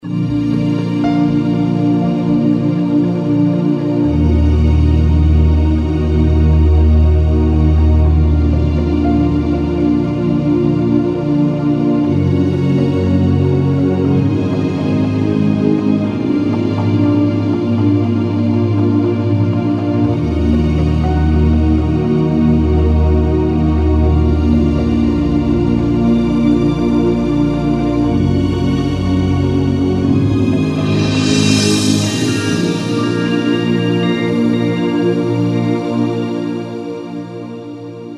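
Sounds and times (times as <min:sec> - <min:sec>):
ambient music: 0:00.0 - 0:38.1.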